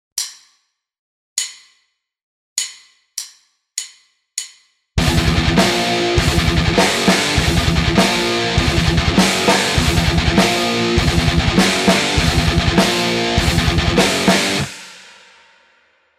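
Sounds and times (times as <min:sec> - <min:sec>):
guitar riff: 0:05.0 - 0:14.7.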